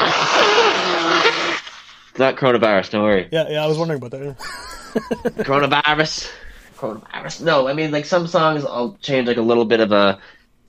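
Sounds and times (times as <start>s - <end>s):
person blowing nose: 0.0s - 2.1s
speech: 2.2s - 10.4s
laughter: 4.2s - 6.4s.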